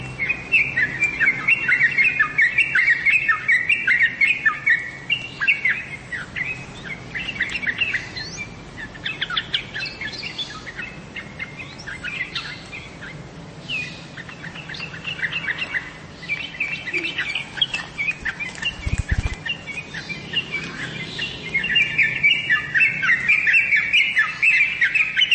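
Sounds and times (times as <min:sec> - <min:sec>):
birds chirping and twittering: 0:00.0 - 0:25.3.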